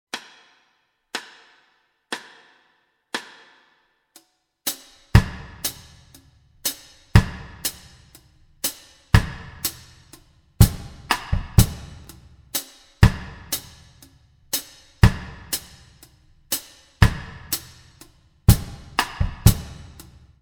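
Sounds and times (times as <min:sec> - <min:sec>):
reggae drum kit: 0:04.7 - 0:20.4.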